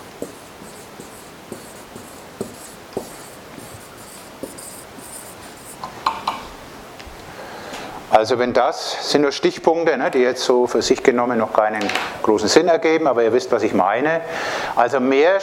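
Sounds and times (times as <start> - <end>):
handwriting scratching across a surface: 0.0 - 5.8
speech: 8.2 - 15.4.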